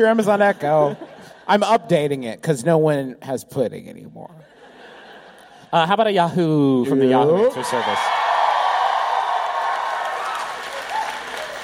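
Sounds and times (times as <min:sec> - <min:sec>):
laughter: 0:00.0 - 0:02.0, 0:04.4 - 0:05.8
speech: 0:00.0 - 0:04.6, 0:05.7 - 0:08.3
audience cheering and applause: 0:07.2 - 0:11.6.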